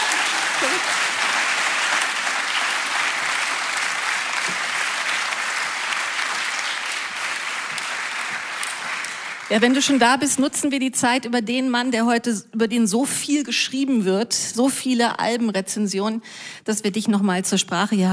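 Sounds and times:
audience applause: 0.0 - 10.1
speech: 0.6 - 1.0, 9.5 - 18.1.

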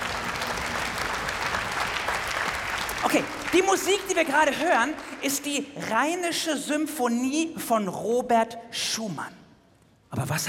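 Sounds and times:
audience applause: 0.0 - 5.9
speech: 3.1 - 9.4, 10.1 - 10.4.

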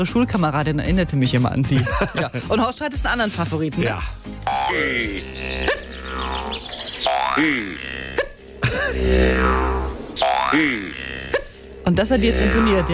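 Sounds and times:
speech: 0.0 - 6.7, 7.4 - 8.0, 8.9 - 11.0, 11.9 - 12.9
laughter: 1.7 - 2.8, 8.6 - 9.2
cartoon grasshopper boings like a twanged jaw harp: 4.5 - 11.6, 12.2 - 12.9
steady low drone with a rhythmic pulse: 4.5 - 12.9.

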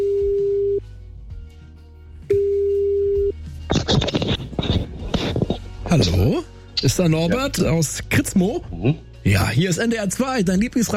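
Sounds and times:
telephone ringback tones: 0.0 - 0.8, 2.3 - 3.3
scratchy rustling noise as the line is picked up: 3.7 - 5.6
speech: 5.9 - 10.9.

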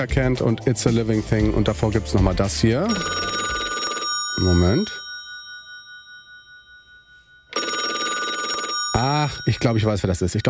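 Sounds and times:
speech: 0.0 - 3.4, 4.4 - 5.0, 9.2 - 10.4
telephone ringing: 2.8 - 10.4.

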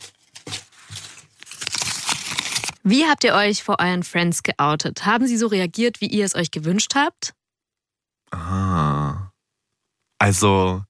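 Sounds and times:
paper question slip rustling and crinkling as drawn from a pile: 0.0 - 2.8
speech: 2.8 - 7.4, 8.3 - 9.3, 10.2 - 10.8.

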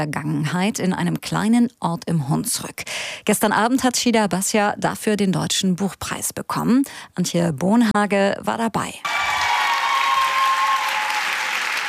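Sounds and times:
speech: 0.0 - 9.3
applause in the Kaisersaal of the Frankfurt Römer: 9.0 - 11.8
cheering in the Kaisersaal of the Frankfurt Römer: 9.0 - 11.8.

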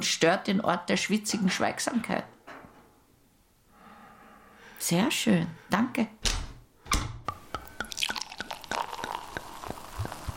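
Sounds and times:
speech: 0.0 - 2.4, 4.8 - 6.2
water dripping in a sauna: 7.3 - 10.3.

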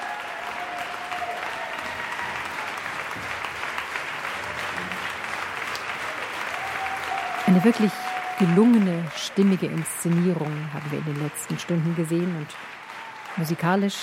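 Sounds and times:
audience applause for conductor and orchestra: 0.0 - 14.0
speech: 7.6 - 12.8, 13.4 - 14.0.

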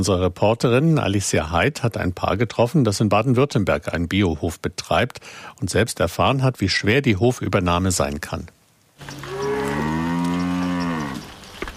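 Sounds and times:
speech: 0.0 - 9.3
cows mooing while driven to pasture: 9.0 - 11.3.

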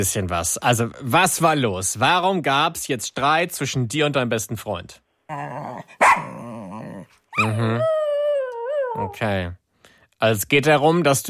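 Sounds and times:
speech: 0.0 - 6.4, 7.4 - 8.0, 9.0 - 9.6, 10.2 - 11.2
dog barking: 6.0 - 6.4.

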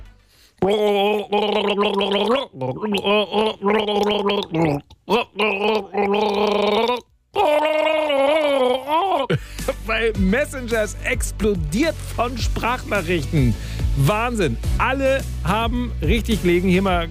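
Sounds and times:
person gargling a pop melody: 0.6 - 9.4
speech: 0.6 - 17.0.

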